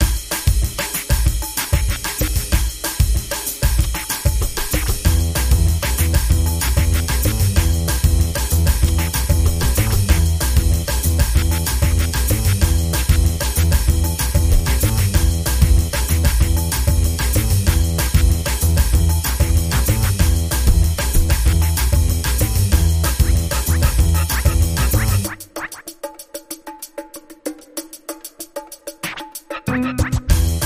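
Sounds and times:
record scratching rhythm: 0:00.0 - 0:02.7, 0:03.6 - 0:26.0, 0:29.0 - 0:30.5.

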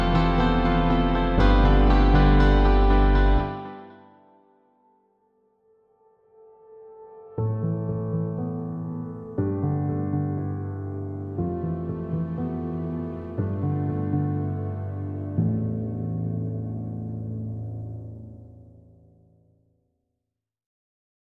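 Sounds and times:
guitars: 0:00.0 - 0:04.0
synths: 0:00.0 - 0:04.4, 0:05.6 - 0:17.9
piano: 0:00.0 - 0:19.4.

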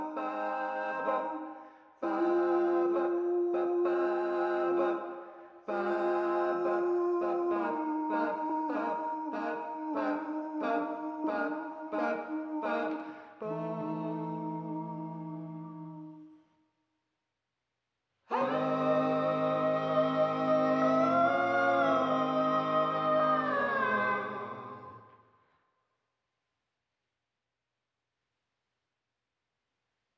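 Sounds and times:
choirs singing: 0:00.0 - 0:16.3, 0:18.3 - 0:25.1.

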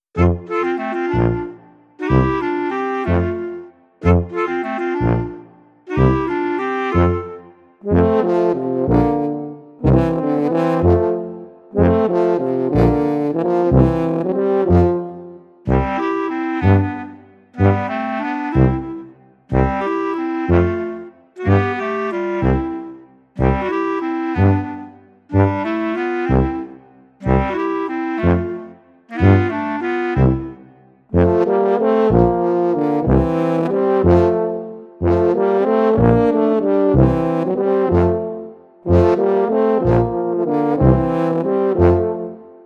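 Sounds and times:
clarinet: 0:00.0 - 0:42.6.

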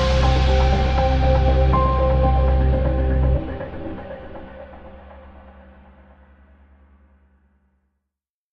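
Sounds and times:
piano: 0:00.0 - 0:05.8.

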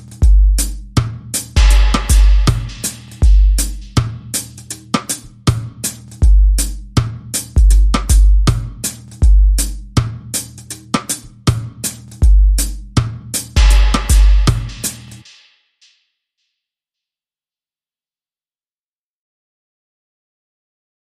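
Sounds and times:
juicy beat: 0:00.0 - 0:15.3.

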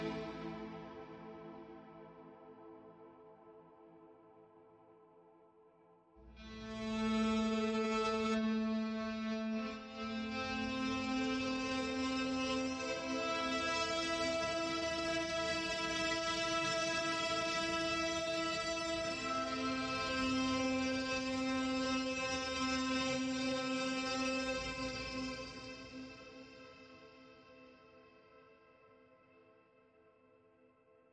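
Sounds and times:
middle strings: 0:00.0 - 0:03.0, 0:06.3 - 0:27.2.

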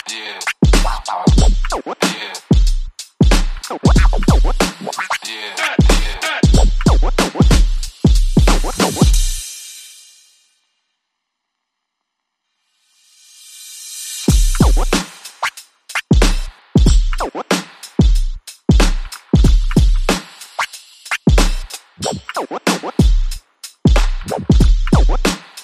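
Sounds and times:
vocal chops: 0:00.0 - 0:02.6, 0:03.6 - 0:07.7, 0:24.2 - 0:25.1
drums: 0:00.0 - 0:10.6, 0:13.0 - 0:25.6.

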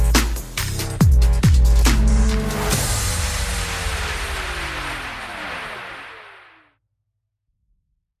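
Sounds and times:
percussion: 0:00.0 - 0:06.0
bass: 0:00.0 - 0:06.7
sound effects: 0:01.9 - 0:06.7.

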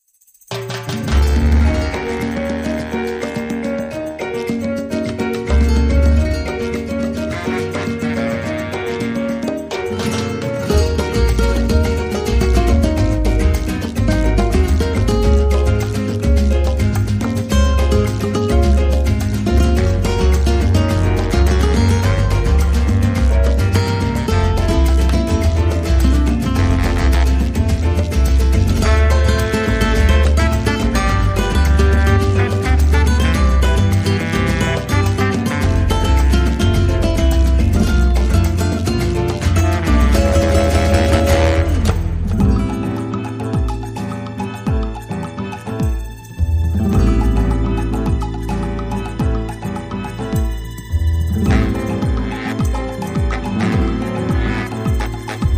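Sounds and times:
salsa music without trumpet: 0:00.3 - 0:55.5.

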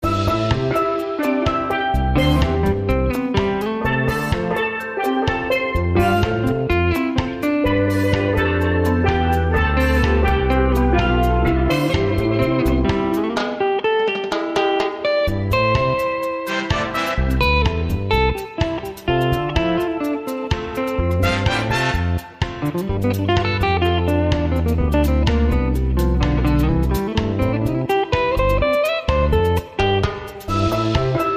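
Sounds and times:
calypso music: 0:00.0 - 0:31.3.

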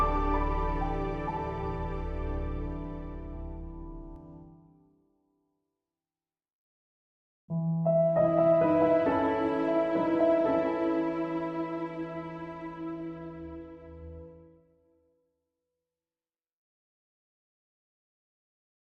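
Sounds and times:
underscore music with strings: 0:00.0 - 0:04.3, 0:08.1 - 0:14.4.

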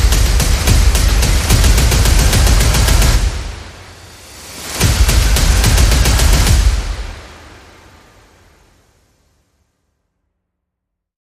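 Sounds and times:
percussion: 0:00.0 - 0:07.3
sound effects: 0:00.0 - 0:09.1.

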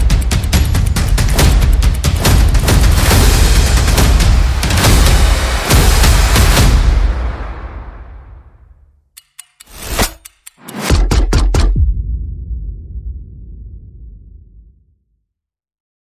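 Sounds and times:
percussion: 0:00.0 - 0:07.8, 0:09.1 - 0:12.5.

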